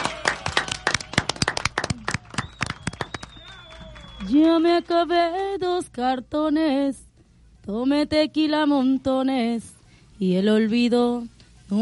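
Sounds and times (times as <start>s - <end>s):
audience applause: 0.0s - 5.1s
speech: 4.2s - 7.0s, 7.7s - 11.8s.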